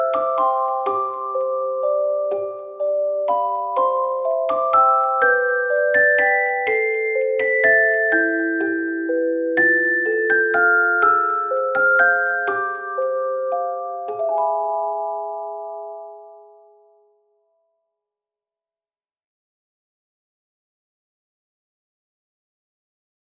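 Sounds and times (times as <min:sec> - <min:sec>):
solo celesta playing a waltz: 0:00.0 - 0:17.3.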